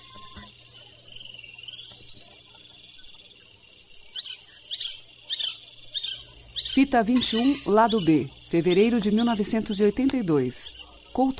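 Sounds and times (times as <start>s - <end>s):
forest soundscape recording: 0.0s - 11.3s
speech: 6.8s - 11.3s.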